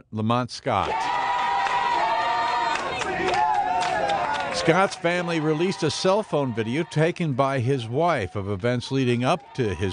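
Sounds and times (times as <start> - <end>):
speech: 0.1 - 1.2, 4.6 - 9.9
protest crowd shouting and chanting: 0.7 - 9.9.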